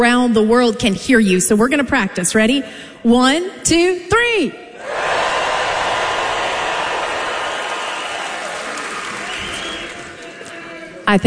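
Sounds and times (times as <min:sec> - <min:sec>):
speech: 0:00.0 - 0:05.0, 0:11.1 - 0:11.2
concert crowd yelling and screaming: 0:04.8 - 0:10.8.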